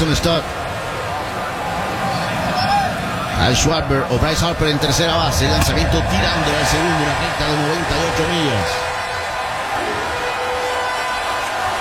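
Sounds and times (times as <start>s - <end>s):
standing baseball crowd cheering at Truist Park in the postseason: 0.0s - 11.8s
speech: 0.1s - 0.6s, 3.4s - 8.9s.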